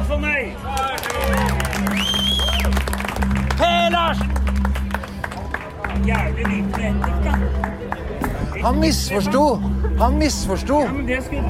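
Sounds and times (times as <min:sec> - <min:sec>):
crowd voices: 0:00.0 - 0:11.4
audience applause: 0:00.7 - 0:08.7
speech: 0:08.6 - 0:11.4.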